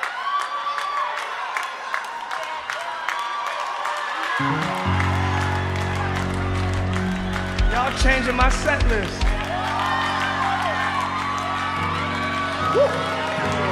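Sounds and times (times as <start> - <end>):
audience clapping: 0.0 - 13.7
crowd cheering and whooping: 0.0 - 13.7
speech: 4.4 - 4.8, 7.9 - 9.3, 12.7 - 13.2
deep sustained musical tones: 4.4 - 13.7.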